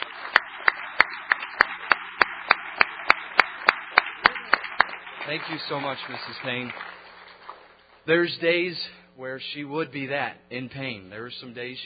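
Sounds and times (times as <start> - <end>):
audience applause: 0.0 - 7.8
speech: 5.3 - 6.9, 8.0 - 11.8.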